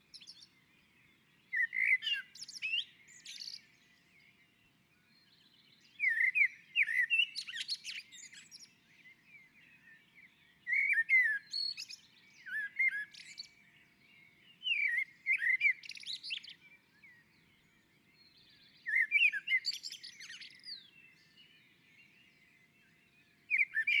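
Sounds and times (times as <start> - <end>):
common blackbird singing: 0.0 - 4.4, 5.0 - 23.9.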